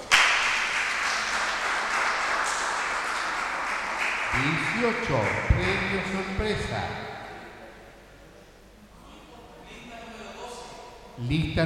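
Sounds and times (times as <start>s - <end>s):
applause for a family at a numbered prize draw: 0.0s - 6.2s
speech: 4.4s - 7.0s, 11.2s - 11.6s.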